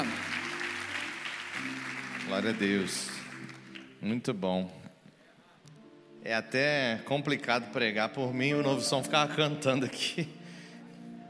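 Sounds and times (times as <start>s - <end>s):
audience applause: 0.0s - 4.0s
speech: 2.3s - 3.2s, 4.0s - 4.8s, 6.2s - 10.4s.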